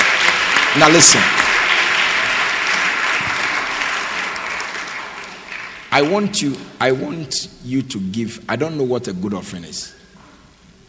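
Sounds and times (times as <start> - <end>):
audience applauding: 0.0 - 7.1
speech: 0.8 - 1.6, 6.0 - 10.0.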